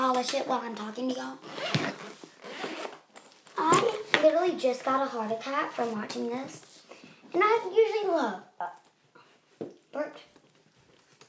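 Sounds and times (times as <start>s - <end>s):
speech: 0.2s - 2.0s, 4.4s - 6.7s, 7.3s - 8.8s, 9.6s - 10.3s
zipper being unzipped on a violin case: 1.4s - 3.0s.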